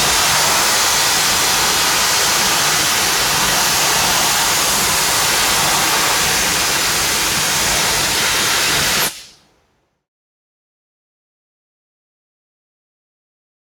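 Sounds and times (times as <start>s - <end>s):
industrial factory machine cutting steel: 0.0s - 9.3s.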